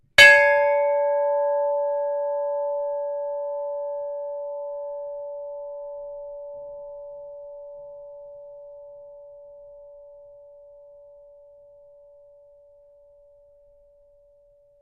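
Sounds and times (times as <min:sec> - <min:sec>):
ship's bell ringing: 0:00.2 - 0:07.2.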